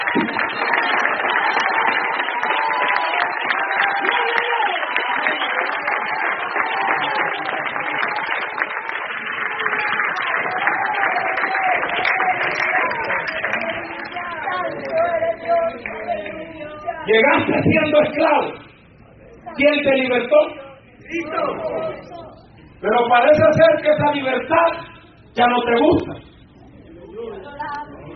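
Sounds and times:
audience clapping: 0.0s - 18.4s
speech: 17.2s - 18.6s, 19.6s - 21.9s, 22.8s - 24.8s, 25.4s - 26.1s.

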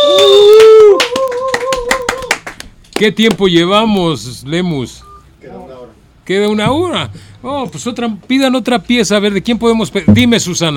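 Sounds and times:
hand clapping in a radio studio: 0.0s - 3.5s
speech: 3.0s - 10.7s.

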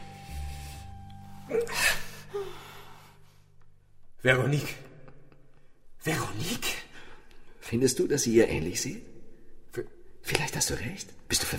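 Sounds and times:
sleeping woman breathing: 0.0s - 3.6s
speech: 1.5s - 2.5s, 4.2s - 4.9s, 6.0s - 6.8s, 7.7s - 9.1s, 9.7s - 11.5s.

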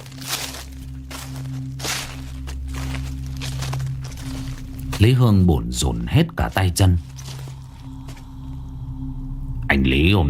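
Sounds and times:
rustling footsteps: 0.0s - 8.6s
speech: 5.0s - 7.1s, 9.7s - 10.2s.

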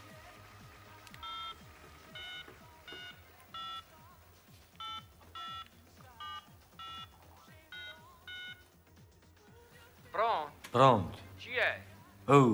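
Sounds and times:
telephone touch-tone dialing beeps: 0.6s - 9.0s
speech: 10.7s - 12.5s.

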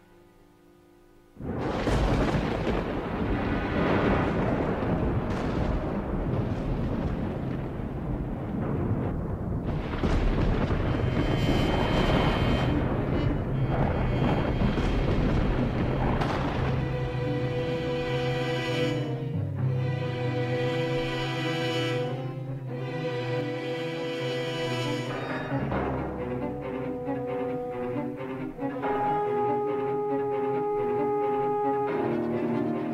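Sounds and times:
thunder rumbling in the night sky: 1.4s - 23.7s, 24.7s - 32.9s.

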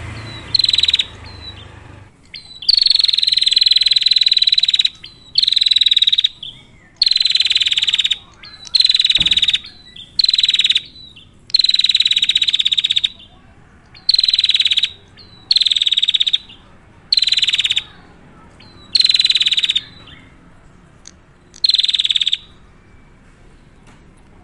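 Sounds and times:
prinia buzzy high-pitched rattling calls: 0.1s - 20.3s, 21.0s - 22.5s.

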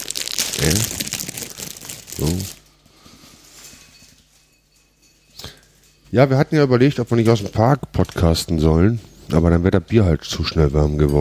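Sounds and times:
plastic bag of crackers tearing open: 0.0s - 2.6s
speech: 2.2s - 2.6s, 6.1s - 11.2s.

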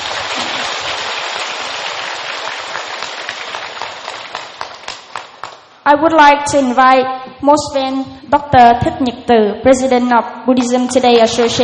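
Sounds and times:
audience applause: 0.0s - 5.7s
speech: 5.9s - 11.6s.

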